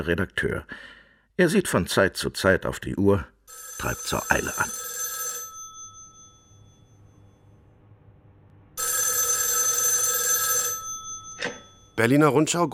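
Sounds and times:
speech: 0.0s - 4.9s, 12.0s - 12.7s
telephone bell ringing: 3.5s - 7.5s, 8.8s - 12.0s.

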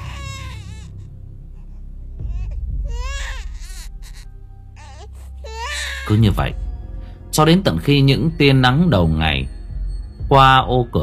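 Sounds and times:
baby crying shrilly: 0.0s - 0.9s, 2.3s - 4.2s, 4.8s - 6.2s
speech: 6.1s - 6.6s, 7.4s - 9.6s, 10.3s - 11.0s.

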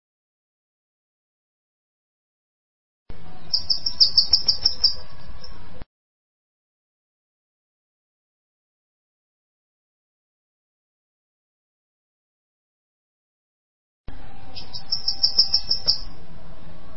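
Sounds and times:
bananaquit singing: 3.2s - 5.8s, 14.4s - 16.2s.

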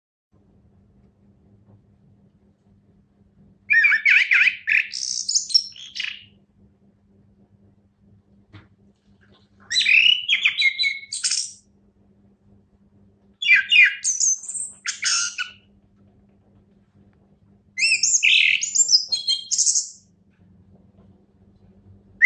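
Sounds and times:
Orange-headed thrush singing rich whistled and buzzy song: 3.7s - 6.3s, 9.7s - 11.6s, 13.4s - 15.6s, 17.8s - 20.1s.

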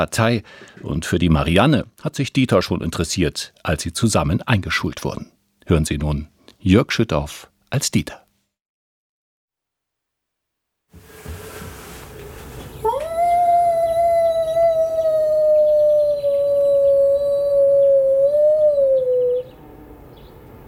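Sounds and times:
speech: 0.0s - 8.2s
man imitating a wolf howl: 12.8s - 19.5s.

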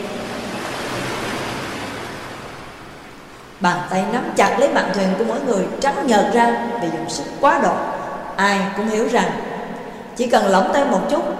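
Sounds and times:
crashing ocean waves: 0.0s - 8.4s
speech: 3.6s - 9.4s, 10.2s - 11.3s.

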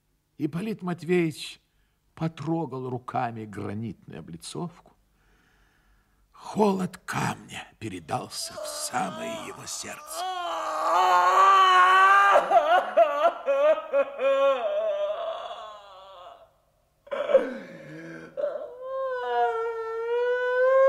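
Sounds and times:
speech: 0.4s - 1.6s, 2.2s - 4.9s, 6.4s - 14.8s
wild human howl of anguish: 8.4s - 16.5s, 17.1s - 20.8s.

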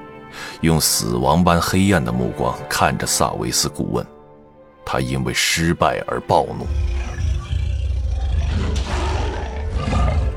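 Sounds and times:
speech: 0.6s - 4.2s, 4.9s - 7.1s
demon roaring: 6.4s - 10.3s.

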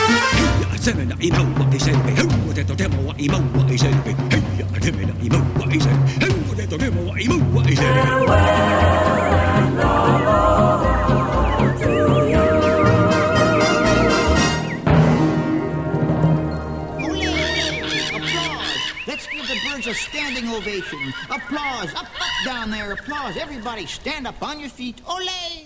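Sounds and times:
steady pounding drums: 0.0s - 18.4s
speech: 0.8s - 9.3s, 19.8s - 25.6s
tiki figures chanting a war chant in a theme-park show: 7.7s - 14.8s
laughter: 17.1s - 23.7s.

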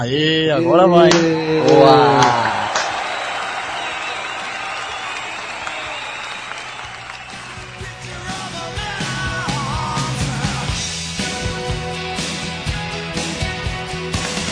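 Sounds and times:
speech: 0.0s - 2.5s
crowd cheering and shouting: 0.9s - 10.8s
round of applause: 1.1s - 10.0s, 13.3s - 14.4s.

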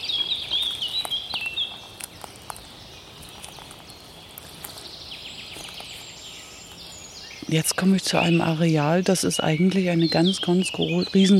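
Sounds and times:
footsteps crunching pine cones, twigs and old leaves: 0.0s - 7.4s
high bird chirps: 0.0s - 11.3s
speech: 7.5s - 11.3s.

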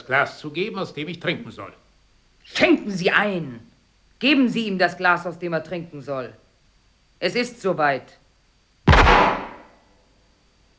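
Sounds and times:
speech: 0.1s - 1.8s, 2.5s - 6.4s, 7.2s - 8.2s
gunshot: 8.9s - 9.7s.

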